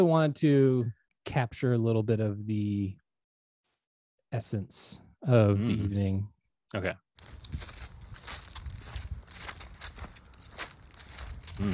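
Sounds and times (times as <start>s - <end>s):
speech: 0.0s - 3.0s, 4.3s - 7.7s, 11.6s - 11.7s
dry leaves crunching underfoot: 7.2s - 11.7s.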